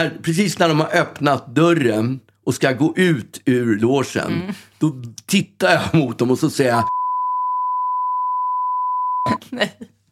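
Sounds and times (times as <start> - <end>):
speech: 0.0 - 7.0, 9.4 - 9.9
high-pitched censor beep: 6.8 - 9.3.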